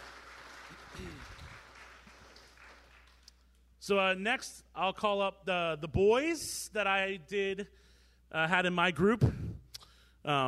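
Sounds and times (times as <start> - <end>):
audience clapping: 0.0 - 3.4
speech: 3.8 - 9.4, 10.2 - 10.4.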